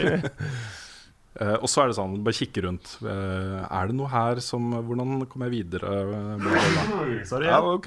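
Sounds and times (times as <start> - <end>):
speech: 0.0 - 0.8, 1.4 - 7.8
sneeze: 6.4 - 7.2
laughter: 6.6 - 7.8.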